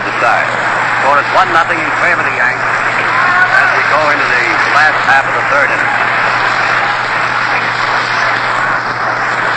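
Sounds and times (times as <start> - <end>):
speech: 0.2 - 3.3, 3.9 - 6.7
stadium crowd applauding at the Polo Grounds: 2.3 - 9.5.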